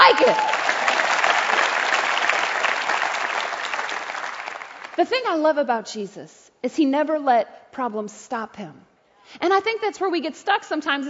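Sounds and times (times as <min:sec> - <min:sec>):
audience clapping: 0:00.0 - 0:05.0
speech: 0:00.1 - 0:00.6, 0:05.0 - 0:11.0.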